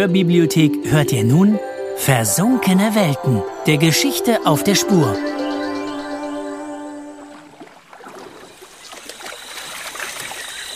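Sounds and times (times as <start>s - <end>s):
speech: 0.0s - 5.4s
sustained musical tone: 0.0s - 7.6s
trickling, burbling water: 6.8s - 10.7s
paddle splashes of a dugout canoe on rainforest water: 7.0s - 10.7s.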